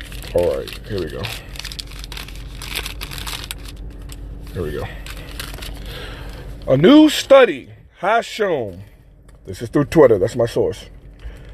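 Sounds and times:
paper crinkling: 0.0s - 6.7s
low hum: 0.0s - 11.5s
speech: 0.3s - 1.5s, 4.5s - 5.0s, 6.6s - 8.9s, 9.5s - 10.9s.

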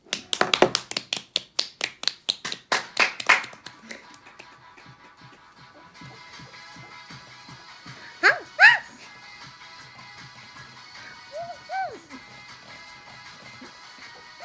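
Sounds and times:
rhythmic hand clapping: 0.0s - 6.4s.

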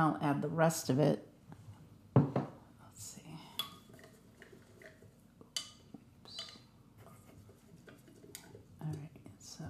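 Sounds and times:
speech: 0.0s - 1.3s
spoon stirring a drink: 3.5s - 9.0s.

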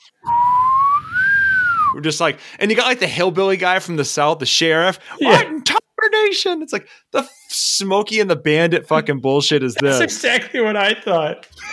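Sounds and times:
person whistling an imitation of a car jump sound effect: 0.2s - 2.0s
speech: 2.0s - 11.7s
laughter: 9.8s - 10.5s.

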